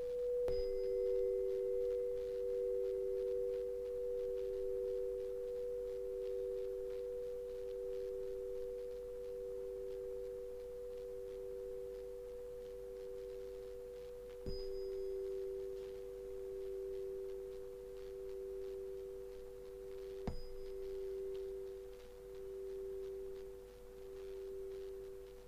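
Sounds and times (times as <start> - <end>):
hypnotic chimes humming as two steady tones: 0.0 - 25.4.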